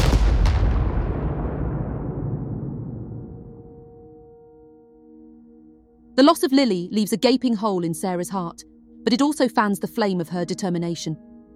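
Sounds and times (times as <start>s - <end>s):
device explosion: 0.0s - 4.3s
speech: 6.2s - 11.3s.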